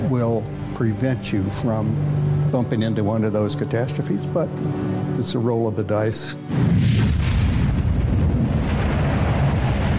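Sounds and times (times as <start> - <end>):
speech: 0.1 - 7.0
rocket launch roar: 6.5 - 9.9.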